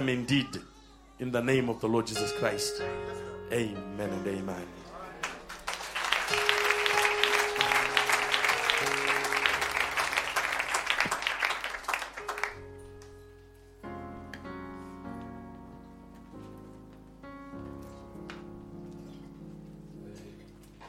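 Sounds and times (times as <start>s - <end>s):
speech: 0.0s - 4.8s
audience applause: 5.2s - 12.6s.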